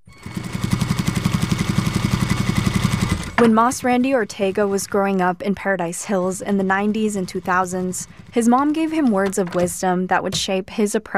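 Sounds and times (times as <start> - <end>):
sewing machines running in a clothing workshop in National City: 0.2 - 5.3, 6.0 - 9.8
speech: 3.4 - 11.1.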